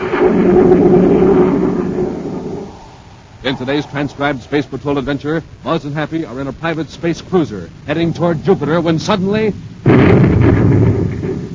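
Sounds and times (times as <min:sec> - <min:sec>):
torpedo blast explosion sound effect: 0:00.0 - 0:04.6, 0:08.0 - 0:11.5
speech: 0:00.2 - 0:01.2, 0:03.4 - 0:10.8.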